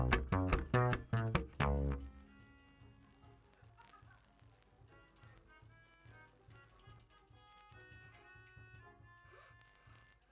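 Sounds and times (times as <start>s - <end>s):
bass guitar recorded by direct input: 0.0s - 2.3s.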